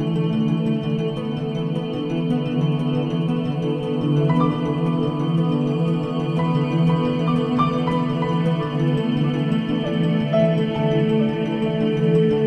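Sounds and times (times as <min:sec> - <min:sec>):
music: 0:00.0 - 0:12.4.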